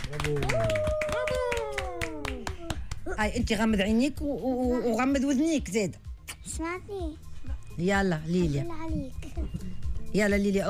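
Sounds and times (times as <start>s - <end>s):
hand claps for a child: 0.0s - 3.1s
speech: 0.1s - 1.4s, 3.1s - 6.0s, 6.6s - 10.6s.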